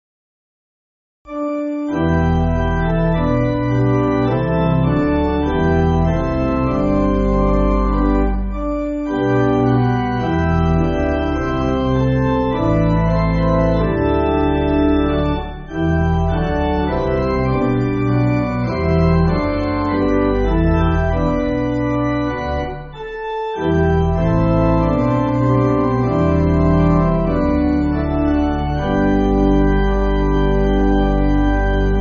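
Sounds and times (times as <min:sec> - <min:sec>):
pipe organ playing folk song: 0:01.3 - 0:32.0.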